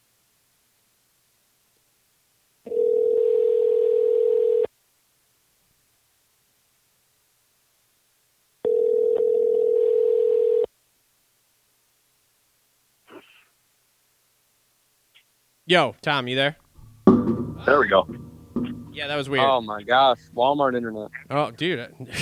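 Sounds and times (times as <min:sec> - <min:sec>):
telephone dial tone while redialing: 0:02.7 - 0:04.7, 0:08.6 - 0:10.7
speech: 0:15.7 - 0:16.6, 0:17.6 - 0:18.2, 0:19.0 - 0:22.2
laughter: 0:21.1 - 0:22.2.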